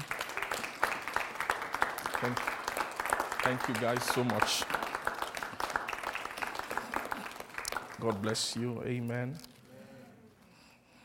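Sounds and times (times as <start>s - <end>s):
audience applauding: 0.0s - 8.7s
speech: 2.2s - 2.6s, 3.4s - 5.0s, 8.0s - 9.5s.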